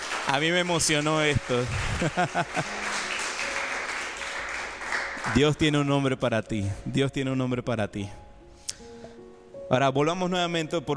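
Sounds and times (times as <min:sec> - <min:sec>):
crowd applause: 0:00.0 - 0:05.6
speech: 0:00.3 - 0:02.9, 0:05.3 - 0:08.2, 0:09.7 - 0:10.9
laughter: 0:01.2 - 0:03.4.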